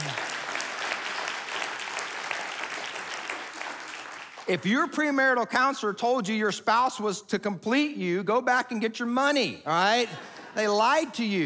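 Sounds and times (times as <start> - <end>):
crowd audience applause: 0.0 - 4.5
speech: 4.5 - 11.4.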